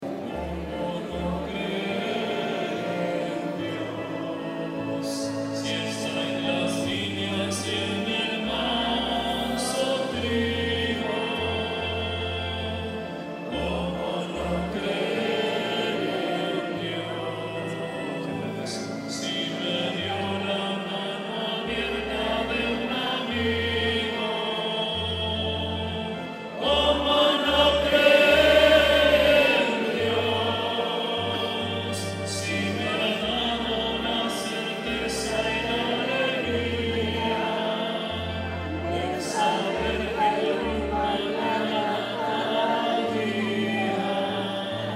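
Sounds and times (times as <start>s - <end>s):
song at Mass: 0.0s - 44.9s.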